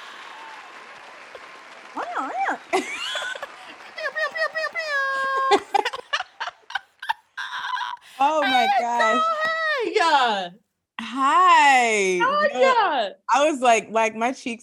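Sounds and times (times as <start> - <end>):
whoops and excited cheers: 0.0 - 5.7
crowd clapping: 0.0 - 7.2
laughter: 0.0 - 9.5
speech: 2.2 - 2.9, 11.2 - 14.6.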